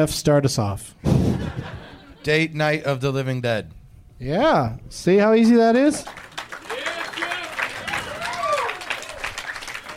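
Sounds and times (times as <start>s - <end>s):
speech: 0.0s - 1.6s, 2.2s - 6.2s
laughter: 1.1s - 2.5s
crowd clapping: 5.4s - 9.9s
voices calling out and whooping: 6.7s - 9.9s.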